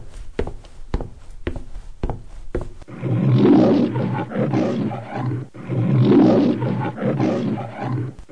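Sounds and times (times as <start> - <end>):
soft footstep-like taps: 0.0 - 2.9
lion roaring: 2.9 - 8.3.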